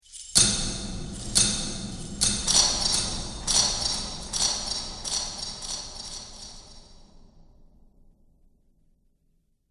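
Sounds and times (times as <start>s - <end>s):
metal chains: 0.0s - 7.0s
magic ambience: 1.0s - 7.0s.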